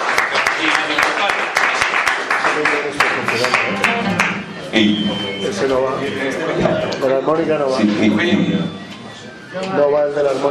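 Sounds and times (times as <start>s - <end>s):
audience applause: 0.0s - 4.7s
speech: 2.6s - 3.8s, 4.7s - 8.8s, 9.5s - 10.4s.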